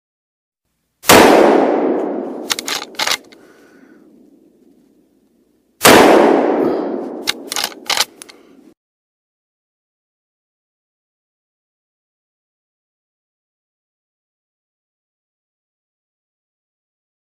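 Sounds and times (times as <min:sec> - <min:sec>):
loud gunshot with echo in open field: 0:01.0 - 0:02.5, 0:05.8 - 0:07.5.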